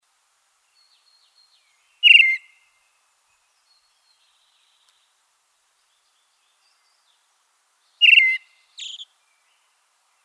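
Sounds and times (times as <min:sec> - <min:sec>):
Red-throated thrush song of looping whistled notes and scratchy twittering: 0:08.0 - 0:09.0.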